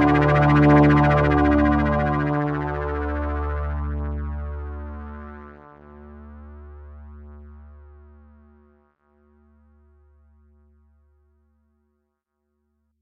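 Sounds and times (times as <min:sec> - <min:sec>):
synthesizer: 0:00.0 - 0:08.7.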